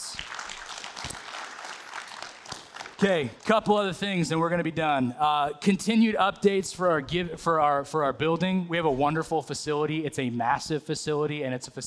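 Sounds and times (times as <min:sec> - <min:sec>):
audience round of applause: 0:00.0 - 0:03.7
speech: 0:03.0 - 0:11.8.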